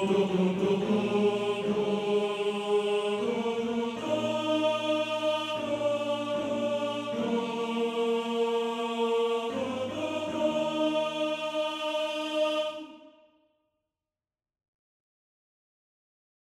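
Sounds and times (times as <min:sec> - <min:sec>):
tenor singing: 0:00.0 - 0:13.1.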